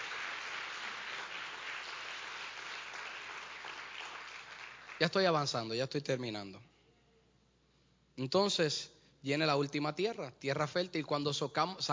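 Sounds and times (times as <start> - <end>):
audience applause: 0.0 - 5.1
speech: 5.0 - 6.7, 8.2 - 11.9.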